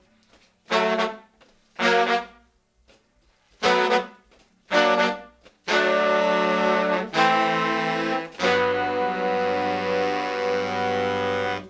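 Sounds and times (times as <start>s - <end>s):
1970s analog funk soul horns: 3.6s - 11.6s.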